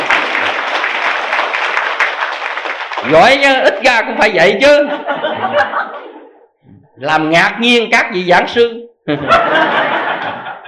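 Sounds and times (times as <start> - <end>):
audience applause: 0.0 - 3.6
speech: 3.0 - 5.9, 7.0 - 10.1
laughter: 3.7 - 6.4, 9.1 - 10.6.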